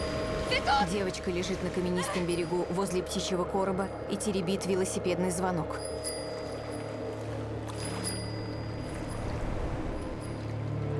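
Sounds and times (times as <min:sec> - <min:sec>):
water splashing as a woman and a boy wade ashore: 0:00.0 - 0:02.8, 0:05.9 - 0:10.9
speech: 0:00.6 - 0:06.1.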